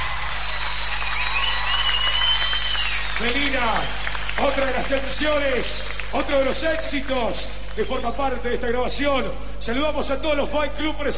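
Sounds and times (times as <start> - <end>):
crowd noise: 0.0 - 6.6
loud audience applause: 0.0 - 8.4
speech: 3.2 - 11.1.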